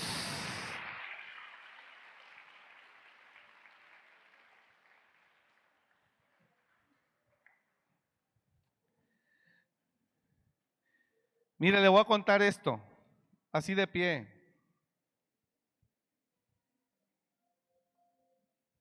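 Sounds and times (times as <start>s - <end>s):
audience applauding: 0.0s - 7.0s
speech: 11.6s - 12.9s, 13.5s - 14.4s.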